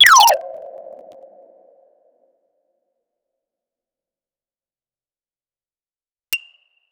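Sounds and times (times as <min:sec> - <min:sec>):
electronic sound effects: 0:00.0 - 0:01.6.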